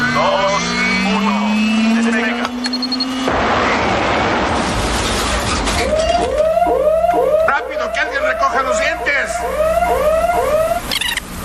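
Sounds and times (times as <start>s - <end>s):
rising tones: 0.0s - 11.2s
crash test impact of a vehicle: 1.9s - 6.9s.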